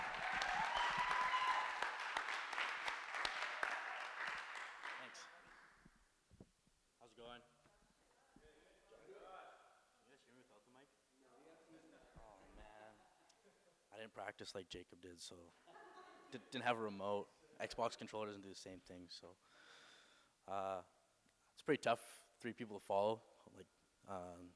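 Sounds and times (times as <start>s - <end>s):
crowd clapping: 0.0s - 5.9s
speech: 14.1s - 15.7s, 16.3s - 19.6s, 20.5s - 21.0s, 21.6s - 24.5s.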